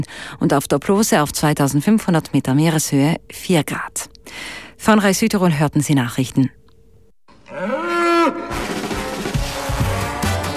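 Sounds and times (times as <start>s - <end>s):
speech: 0.0s - 6.6s, 7.5s - 7.8s
bull bellowing: 7.3s - 10.5s.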